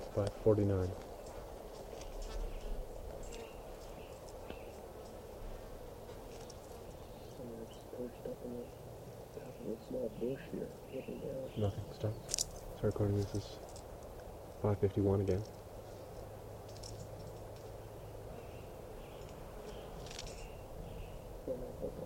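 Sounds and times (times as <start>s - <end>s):
quiet noise: 0.0s - 22.0s
speech: 0.2s - 1.1s, 9.7s - 13.7s, 14.6s - 15.6s
bird cooing: 2.2s - 8.8s, 9.4s - 12.1s, 18.3s - 22.0s.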